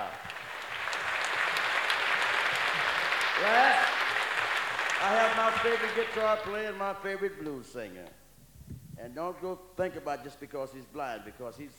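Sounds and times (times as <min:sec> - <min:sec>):
audience clapping for the tenor player in a live band: 0:00.0 - 0:08.2
speech: 0:03.4 - 0:03.7, 0:05.0 - 0:08.2, 0:09.0 - 0:11.7.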